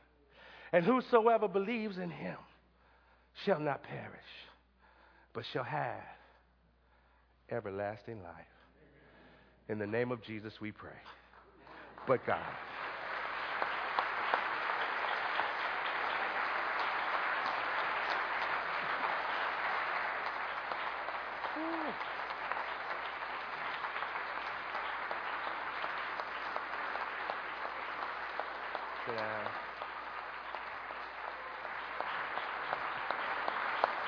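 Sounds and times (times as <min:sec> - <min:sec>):
speech: 0:00.7 - 0:02.5, 0:03.4 - 0:04.5, 0:05.3 - 0:06.2, 0:07.5 - 0:08.5, 0:09.7 - 0:11.2, 0:12.0 - 0:12.7
audience applause: 0:11.7 - 0:34.0.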